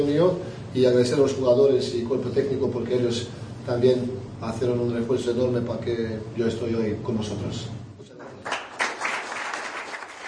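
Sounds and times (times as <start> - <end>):
speech: 0.0 - 7.8
audience applause at an award event honouring football coach Ranko Popovic: 8.4 - 10.2.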